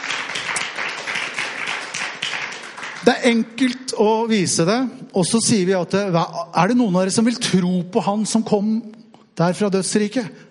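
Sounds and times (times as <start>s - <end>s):
applause at a church gathering: 0.0s - 3.6s
speech: 3.1s - 10.4s.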